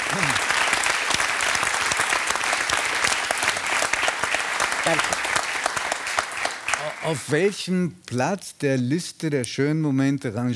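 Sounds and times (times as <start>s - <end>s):
audience applause: 0.0s - 7.4s
speech: 4.9s - 5.2s, 7.0s - 10.5s.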